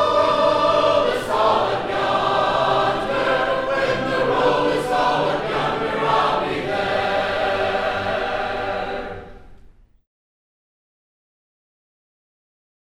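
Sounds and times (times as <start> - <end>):
a cappella hymn singing: 0.0 - 9.6.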